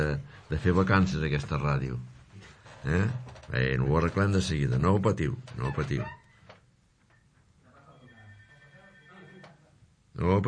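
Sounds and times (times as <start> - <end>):
speech: 0.1 - 2.1, 2.8 - 6.2, 10.2 - 10.4
electronic telephone ringing with an incoming call to a radio show: 7.8 - 9.6.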